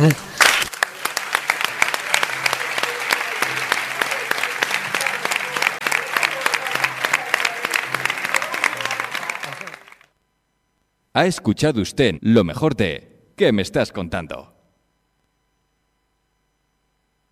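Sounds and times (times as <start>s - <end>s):
speech: 0.0s - 0.2s, 11.2s - 14.5s
applause: 0.0s - 10.1s.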